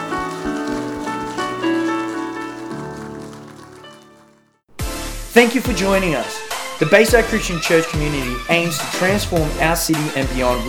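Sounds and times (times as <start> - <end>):
audience clapping: 0.0 - 4.7
sustained, harmonically rich music: 0.0 - 6.2
speech: 5.4 - 10.6.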